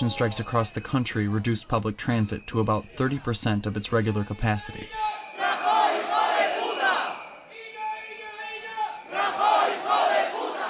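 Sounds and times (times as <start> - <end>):
speech: 0.1 - 5.1
metro workers chanting in a metro station: 4.9 - 10.6.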